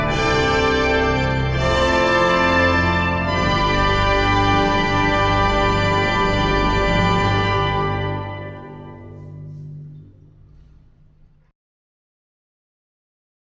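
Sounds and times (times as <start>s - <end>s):
fanfare: 0.0s - 9.7s.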